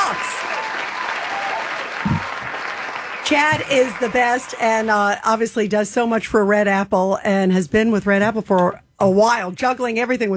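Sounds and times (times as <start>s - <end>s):
audience applause celebrating a business award: 0.0s - 5.1s
speech: 3.3s - 10.3s.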